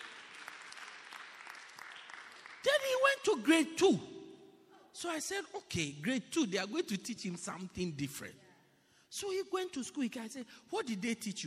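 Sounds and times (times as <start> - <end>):
audience clapping: 0.0 - 3.2
speech: 3.2 - 4.1, 5.0 - 8.4, 9.1 - 11.4.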